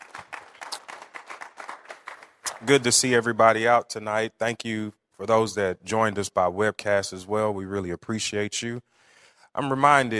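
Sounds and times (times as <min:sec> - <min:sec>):
congregation hand clapping at an evening Bible study: 0:00.0 - 0:03.4
speech: 0:02.6 - 0:10.1.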